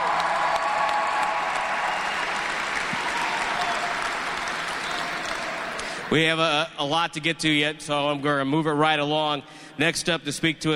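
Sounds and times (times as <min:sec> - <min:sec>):
round of applause: 0:00.0 - 0:06.1
speech: 0:06.1 - 0:10.7.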